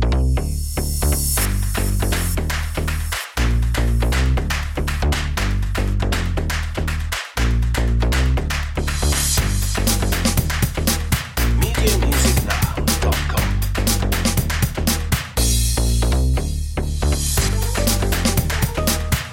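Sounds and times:
latin groove music: 0.1s - 19.3s.

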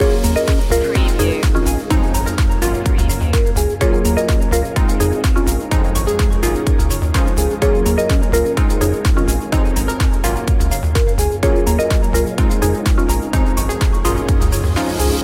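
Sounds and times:
positive music loop: 0.0s - 15.2s.

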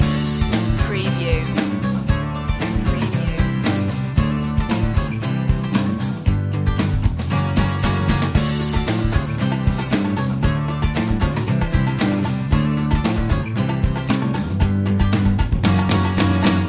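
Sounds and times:
country road chase music loop: 0.0s - 16.6s.

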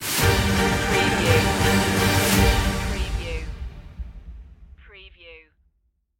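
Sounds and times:
battle music: 0.0s - 4.8s.

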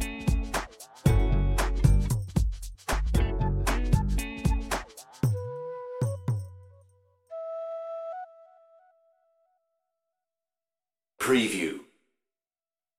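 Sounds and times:
sexy instrumental beat: 0.0s - 6.6s.

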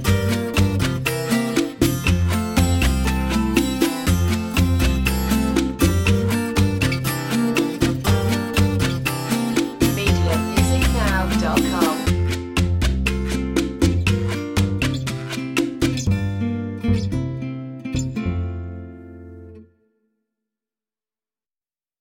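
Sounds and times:
cha cha cha groove: 0.0s - 17.2s.

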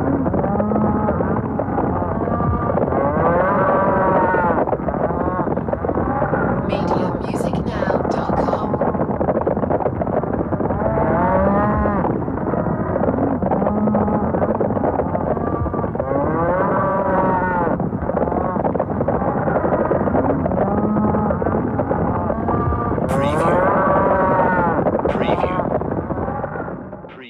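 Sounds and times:
cattle herd bellowing and mooing: 0.0s - 6.6s, 10.7s - 24.9s
constant loud rumble: 0.0s - 27.2s.

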